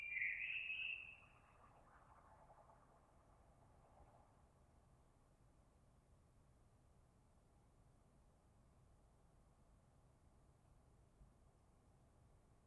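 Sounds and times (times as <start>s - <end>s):
blackbird: 0.0s - 2.0s.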